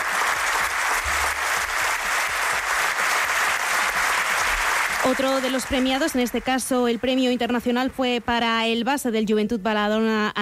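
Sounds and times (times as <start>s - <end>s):
sustained ovation from an audience: 0.0s - 7.6s
speech: 5.0s - 10.4s.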